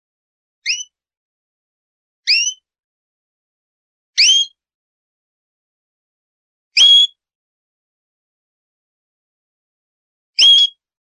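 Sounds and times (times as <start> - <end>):
canary song with whistled notes and rapid rolling trill: 0.6 - 1.0, 2.3 - 2.7, 4.2 - 4.6, 6.8 - 7.2, 10.4 - 10.9.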